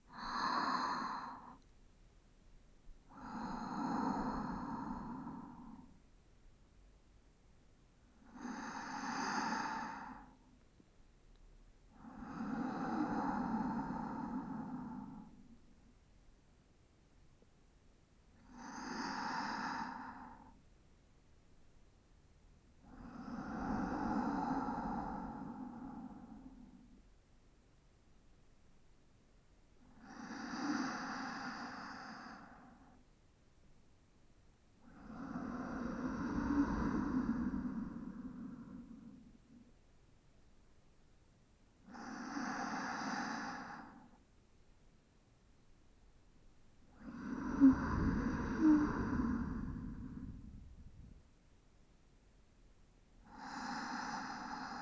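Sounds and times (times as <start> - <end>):
sleep breathing on the left side: 0.1 - 1.6, 3.1 - 6.0, 8.3 - 10.4, 12.0 - 15.5, 18.5 - 20.6, 23.0 - 26.8, 30.0 - 33.0, 34.9 - 39.6, 41.9 - 44.2, 46.9 - 51.3, 53.2 - 54.8.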